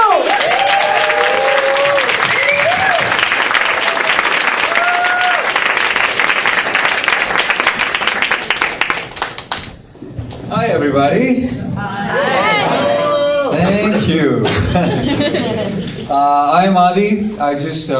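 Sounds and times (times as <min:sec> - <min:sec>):
audience clapping and cheering for a comedian: 0:00.0 - 0:09.8
whistles: 0:02.3 - 0:02.8
speech: 0:11.0 - 0:11.9, 0:14.1 - 0:17.9
laughter: 0:12.0 - 0:16.1.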